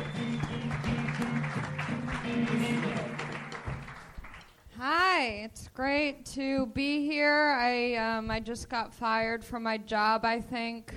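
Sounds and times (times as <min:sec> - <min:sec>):
loud band music with a repeating low bass line: 0:00.0 - 0:03.2
audience applause and cheering for a comedian at a live comedy show: 0:00.0 - 0:04.6
speech: 0:04.8 - 0:10.9.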